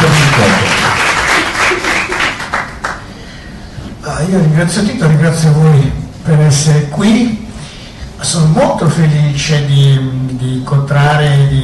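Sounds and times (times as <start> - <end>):
audience applause: 0.0 - 3.1
speech: 4.3 - 7.4, 8.2 - 11.6.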